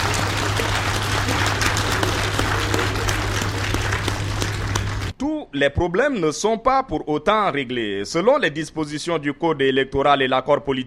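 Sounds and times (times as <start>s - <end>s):
large assembly applauding: 0.0s - 5.2s
low steady hum: 0.0s - 5.2s
speech: 5.5s - 10.8s.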